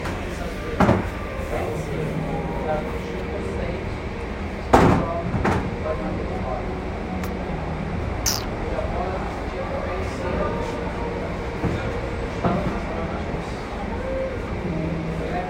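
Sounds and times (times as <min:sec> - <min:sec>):
restaurant ambience: 0:00.0 - 0:15.4.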